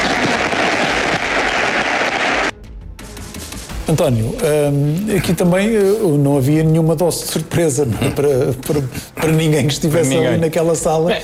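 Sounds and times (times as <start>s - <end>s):
crowd applauding: 0.0s - 2.5s
speech: 3.9s - 11.2s.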